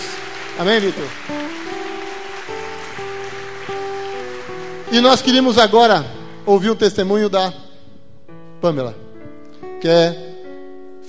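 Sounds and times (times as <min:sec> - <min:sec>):
audience applause: 0:00.0 - 0:06.4
speech: 0:00.6 - 0:01.7, 0:04.9 - 0:07.6, 0:08.6 - 0:09.0, 0:09.8 - 0:10.2.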